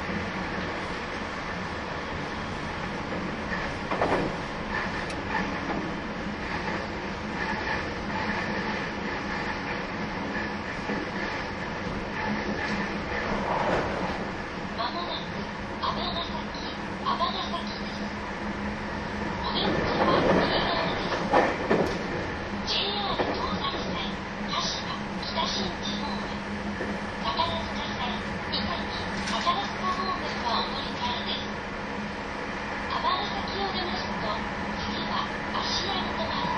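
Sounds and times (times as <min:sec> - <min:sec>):
225 series 700 Shinkaisoku 23 train running between Yasu and Himeji: 0:00.0 - 0:36.5.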